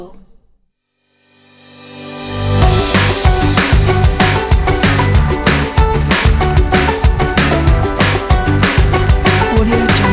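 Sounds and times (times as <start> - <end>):
happy rock music: 2.3 - 10.0.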